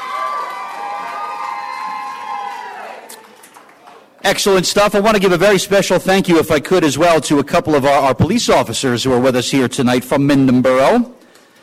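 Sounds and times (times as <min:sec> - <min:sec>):
applause and cheering: 0:00.0 - 0:04.1
speech: 0:04.2 - 0:11.2.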